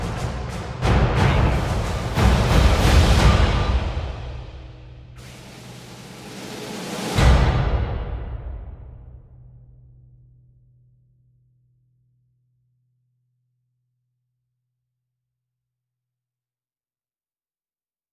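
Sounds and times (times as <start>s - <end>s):
percussion: 0.0s - 10.0s.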